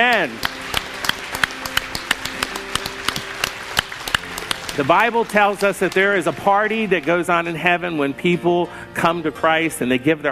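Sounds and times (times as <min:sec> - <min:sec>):
speech: 0:00.0 - 0:00.6, 0:04.8 - 0:10.3
audience clapping: 0:00.0 - 0:08.0.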